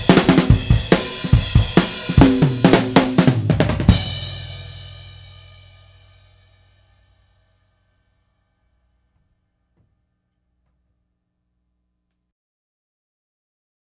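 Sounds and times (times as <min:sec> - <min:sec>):
drum submix: 0:00.0 - 0:07.3.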